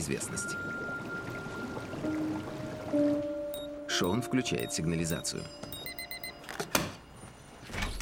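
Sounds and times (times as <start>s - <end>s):
speech: 0.0s - 1.0s, 2.0s - 3.4s, 4.0s - 5.7s
jacuzzi water bubbling and churning: 0.0s - 6.4s.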